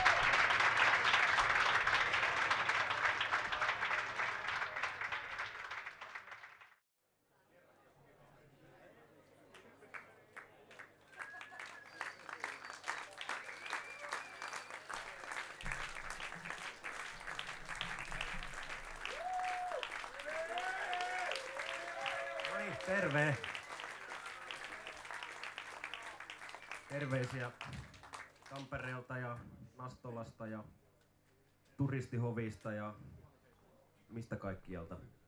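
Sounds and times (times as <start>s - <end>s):
audience applause: 0.0s - 6.8s, 10.7s - 28.8s
speech: 27.1s - 27.8s, 28.6s - 30.8s, 31.8s - 33.0s, 34.2s - 35.2s.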